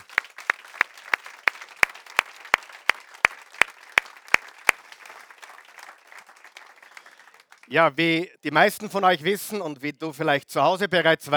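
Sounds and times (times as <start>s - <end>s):
enthusiastic audience applause: 0.0s - 8.1s
speech: 7.7s - 11.3s.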